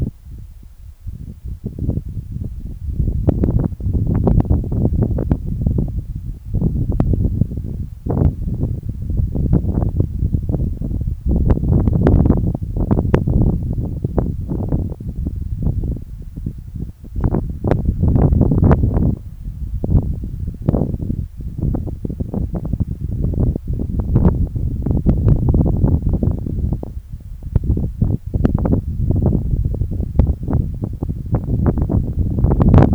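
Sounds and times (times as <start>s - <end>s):
wind at the coast: 0.0s - 32.9s.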